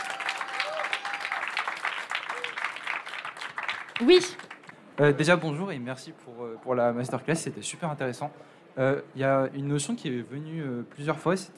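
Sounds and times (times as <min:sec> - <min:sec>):
sustained audience applause: 0:00.0 - 0:04.8
speech: 0:04.0 - 0:04.4, 0:05.0 - 0:11.5.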